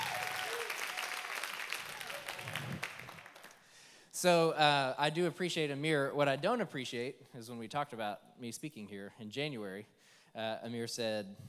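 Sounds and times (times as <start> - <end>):
audience applauding: 0.0 - 3.6
speech: 4.2 - 11.4.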